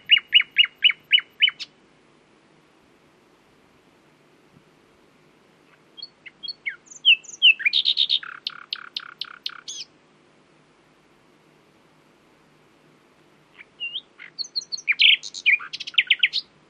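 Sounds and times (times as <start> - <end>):
common nightingale Luscinia megarhynchos singing: 0.0 - 1.8, 5.6 - 10.0, 13.5 - 16.6.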